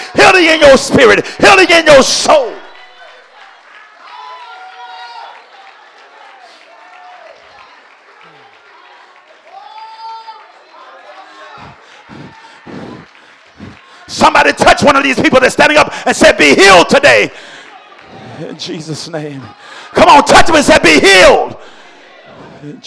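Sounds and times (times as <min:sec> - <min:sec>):
audience clapping: 0:00.0 - 0:20.7
speech: 0:00.4 - 0:02.6, 0:14.3 - 0:17.5, 0:18.4 - 0:21.7, 0:22.6 - 0:22.8.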